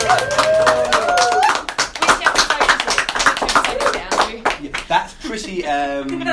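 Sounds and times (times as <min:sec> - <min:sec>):
live audience applause: 0:00.0 - 0:05.0.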